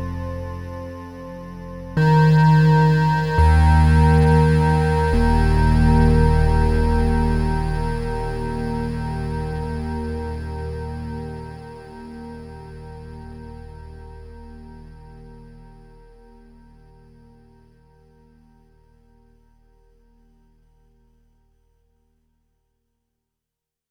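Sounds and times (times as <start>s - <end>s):
PPG wavetable synth long notes: 2.0s - 15.9s.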